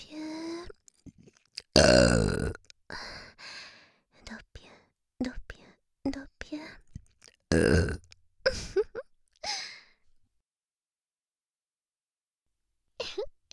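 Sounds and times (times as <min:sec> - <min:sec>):
breathy throat sounds: 0:00.6 - 0:03.3, 0:06.9 - 0:08.6
person burping in a binaural recording: 0:01.7 - 0:02.7, 0:07.5 - 0:08.2.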